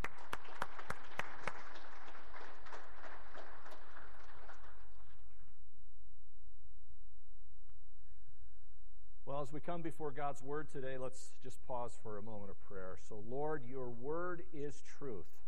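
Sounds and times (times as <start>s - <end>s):
audience applause: 0.0s - 5.5s
low hum: 2.5s - 14.5s
speech: 9.4s - 15.4s.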